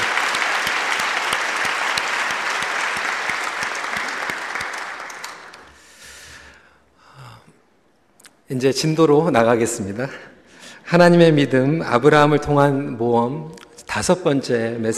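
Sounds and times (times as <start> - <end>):
audience applause: 0.0 - 5.8
brief breathy sound: 5.7 - 7.7
speech: 8.5 - 10.3, 10.9 - 14.9.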